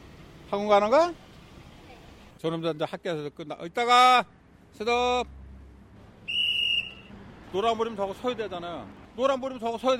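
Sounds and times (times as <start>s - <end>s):
speech: 0.5s - 1.2s, 2.4s - 5.4s, 7.5s - 9.9s
traffic volunteer blowing a sharp whistle: 6.2s - 7.2s.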